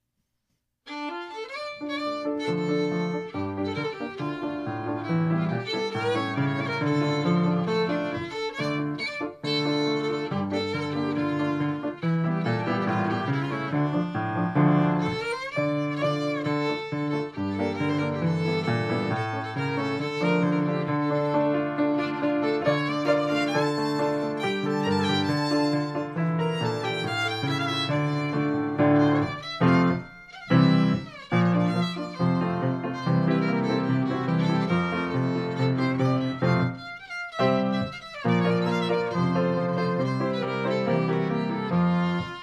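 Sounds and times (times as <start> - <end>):
klezmer music: 0.9 - 42.4.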